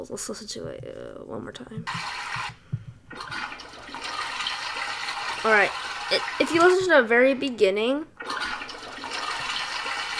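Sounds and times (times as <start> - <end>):
speech: 0.0 - 3.4, 5.4 - 8.1
toilet flushing: 1.9 - 2.5, 3.1 - 7.0, 8.2 - 10.1.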